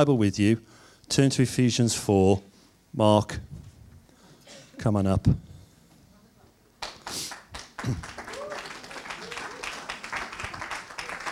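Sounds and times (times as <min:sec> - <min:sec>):
speech: 0:00.0 - 0:03.6, 0:04.8 - 0:05.5, 0:07.8 - 0:08.2
polite half-hearted applause: 0:06.8 - 0:11.3.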